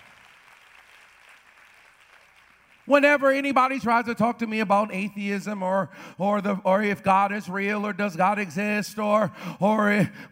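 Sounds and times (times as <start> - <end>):
audience clapping: 0.0 - 2.9
speech: 2.9 - 10.3.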